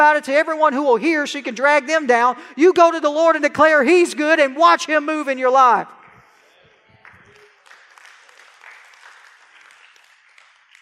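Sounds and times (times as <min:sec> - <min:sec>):
speech: 0:00.0 - 0:06.0
audience applause: 0:07.0 - 0:10.8.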